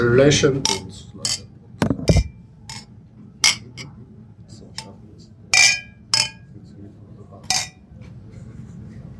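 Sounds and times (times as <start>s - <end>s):
speech: 0.0s - 0.9s
beer glasses clinking in a toast: 0.6s - 1.5s, 2.1s - 3.9s, 5.5s - 6.5s, 7.4s - 7.8s.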